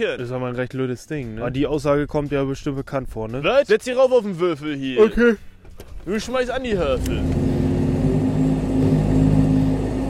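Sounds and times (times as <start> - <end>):
speech: 0.0 - 7.5
wheel loader diesel engine roaring at full throttle: 6.7 - 10.0.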